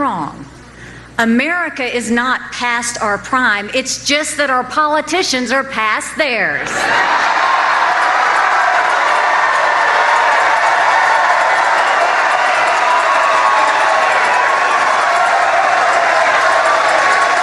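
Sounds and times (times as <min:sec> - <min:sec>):
speech: 0:01.2 - 0:07.4
large crowd cheering and roaring at rally: 0:06.7 - 0:17.4.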